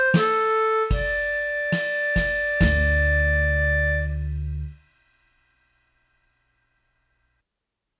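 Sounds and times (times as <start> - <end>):
minor mood music track: 0.0 - 4.8.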